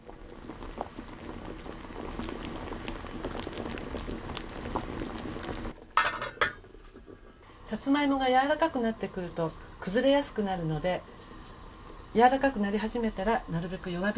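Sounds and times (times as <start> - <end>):
water boiling in a pot: 0.0 - 14.1
metal lid clanking onto pot: 6.0 - 6.6.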